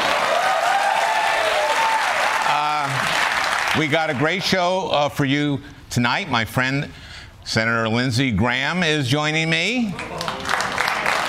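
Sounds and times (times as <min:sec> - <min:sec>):
audience applause: 0:00.0 - 0:04.4, 0:10.0 - 0:11.2
speech: 0:03.8 - 0:10.2.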